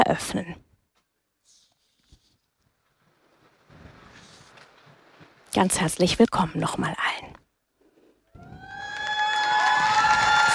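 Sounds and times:
speech: 0.1 - 0.7, 5.5 - 7.3
crowd applauding for Pope Leo XIV: 8.5 - 10.5.

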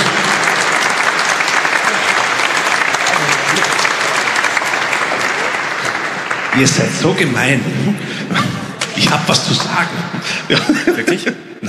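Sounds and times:
large audience applause: 0.0 - 8.2
speech: 6.6 - 11.6
laughter: 7.7 - 11.6.

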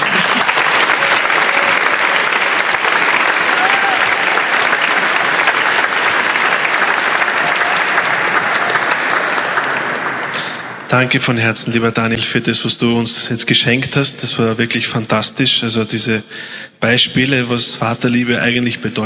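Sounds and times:
audience applause: 0.0 - 10.9
speech: 10.9 - 19.0.

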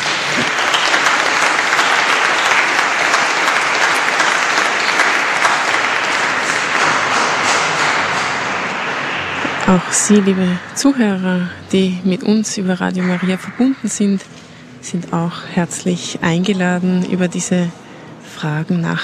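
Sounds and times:
audience applause: 0.0 - 11.1
speech: 9.7 - 17.8, 18.4 - 19.0.

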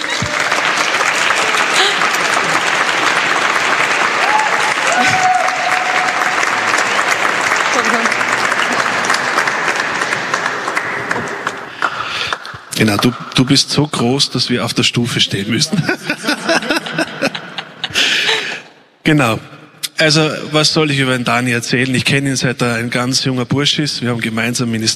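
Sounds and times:
audience applause: 0.0 - 13.2
laughter: 1.4 - 2.9, 15.4 - 18.8
speech: 12.8 - 16.3, 19.1 - 24.9.

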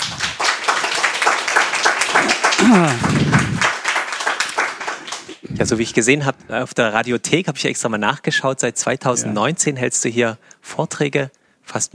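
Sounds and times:
audience applause: 0.0 - 5.8
speech: 2.7 - 3.4, 5.6 - 11.9.

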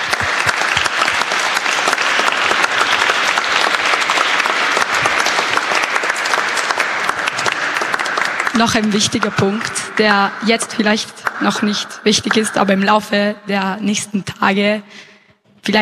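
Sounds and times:
audience applause: 0.0 - 11.6
speech: 8.6 - 15.1, 15.7 - 15.8.

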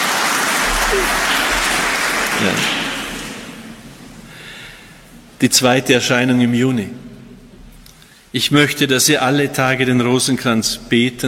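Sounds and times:
audience applause: 0.0 - 3.6
speech: 0.9 - 1.3, 2.4 - 2.8, 5.4 - 7.1, 8.3 - 11.2.

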